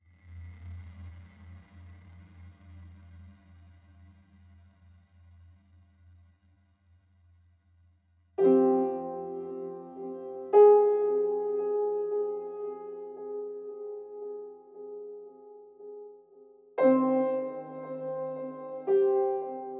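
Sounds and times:
piano layer: 8.4 - 19.7.

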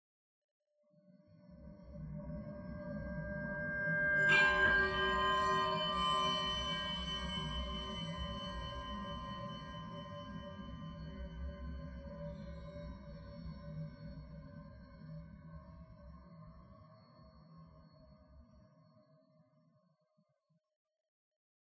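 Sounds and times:
bells heard from interior: 2.9 - 12.6.

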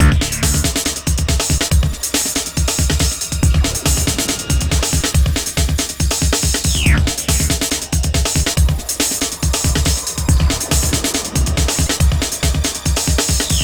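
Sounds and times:
medium groove: 0.0 - 13.6.

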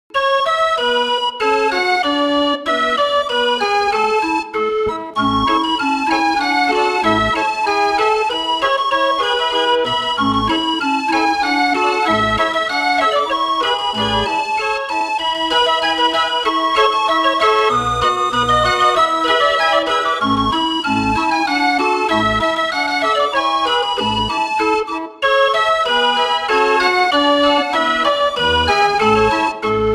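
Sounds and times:
keyboard instrument: 0.1 - 29.9.

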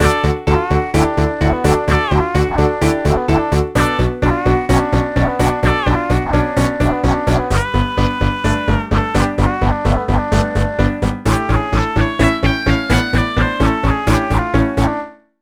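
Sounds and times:
rock and roll music: 0.0 - 14.9.

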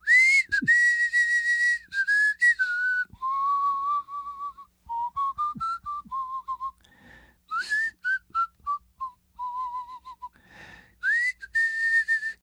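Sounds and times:
whistle: 0.0 - 6.8, 7.5 - 10.4, 11.0 - 12.4.

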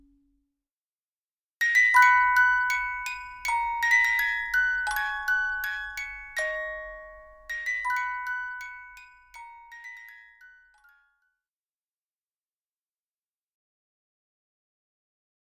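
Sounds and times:
music box melody: 1.6 - 11.2.

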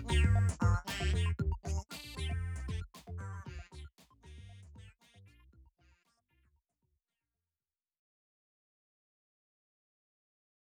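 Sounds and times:
robotic synth instrumental: 0.0 - 5.0.

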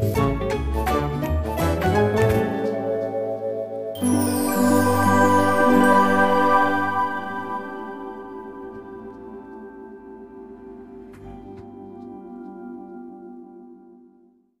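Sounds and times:
minigame win jingle: 0.2 - 9.0.

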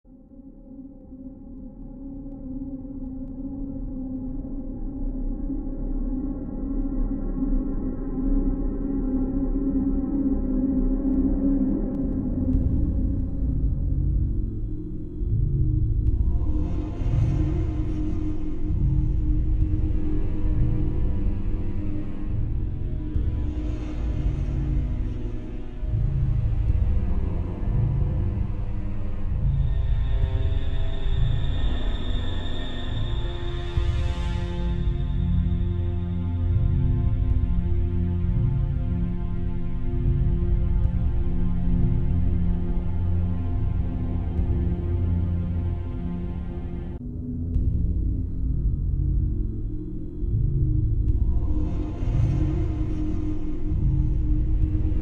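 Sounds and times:
ambient music: 0.1 - 54.9.

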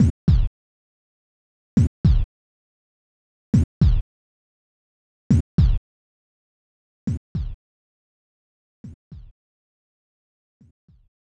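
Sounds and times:
heartbeat: 0.0 - 0.5, 1.8 - 2.3, 3.6 - 4.0, 5.3 - 5.8, 7.1 - 7.6.

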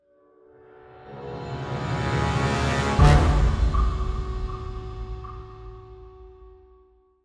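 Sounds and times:
crescendo hit: 1.3 - 6.8.

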